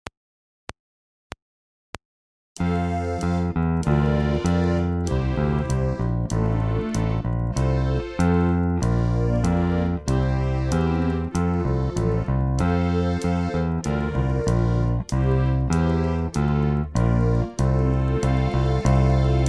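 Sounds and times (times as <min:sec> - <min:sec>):
baroque song: 0:02.6 - 0:19.4.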